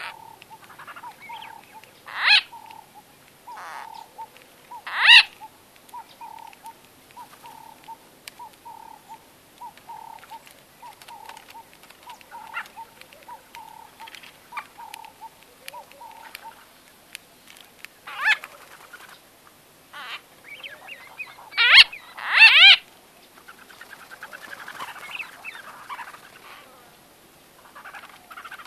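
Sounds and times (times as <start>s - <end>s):
White-fronted bee-eater harsh nasal chattering calls: 0.0s - 16.7s, 19.9s - 22.8s, 23.4s - 26.7s.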